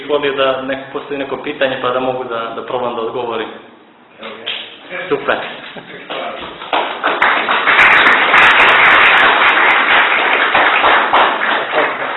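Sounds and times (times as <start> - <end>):
speech: 0.1 - 7.2
applause from an audience at a talk: 6.7 - 12.1.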